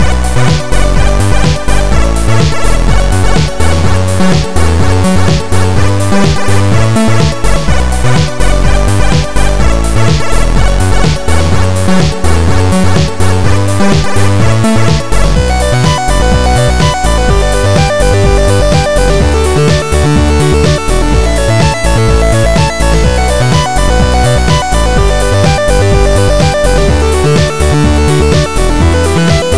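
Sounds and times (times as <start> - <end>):
chiptune music: 0.0 - 29.5.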